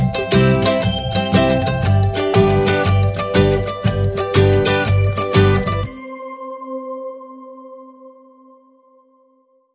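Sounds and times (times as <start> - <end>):
happy Christmas ukulele music without drums or melody: 0.0 - 5.9.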